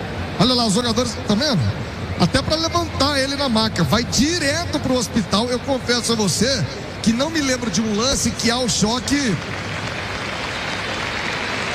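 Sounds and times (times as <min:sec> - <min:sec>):
speech: 0:00.4 - 0:09.6
stadium crowd applauding an injured Bragantino player at a football match: 0:07.4 - 0:11.7.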